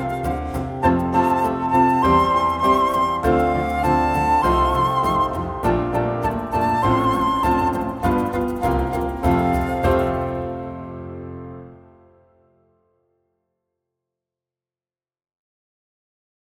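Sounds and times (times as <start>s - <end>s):
flute: 0.0s - 11.8s.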